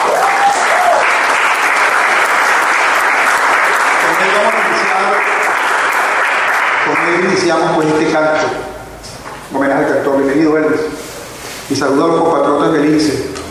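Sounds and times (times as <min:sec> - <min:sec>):
audience applause: 0:00.0 - 0:07.6
speech: 0:07.1 - 0:08.6, 0:09.5 - 0:10.9, 0:11.7 - 0:13.3.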